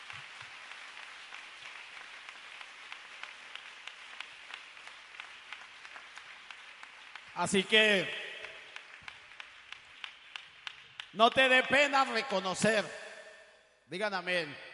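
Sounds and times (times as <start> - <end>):
audience applause in a large room: 0.0 - 11.2
speech: 7.4 - 8.2, 11.2 - 13.0, 13.9 - 14.7.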